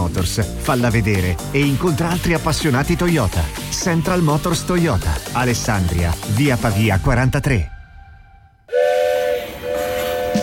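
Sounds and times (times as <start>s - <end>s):
speech: 0.2s - 7.8s
train whistle: 8.7s - 10.4s.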